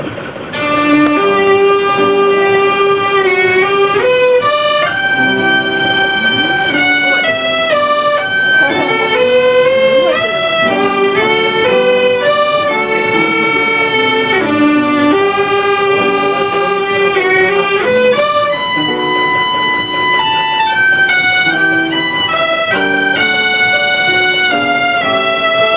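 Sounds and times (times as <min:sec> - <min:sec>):
organ: 0:00.0 - 0:25.7.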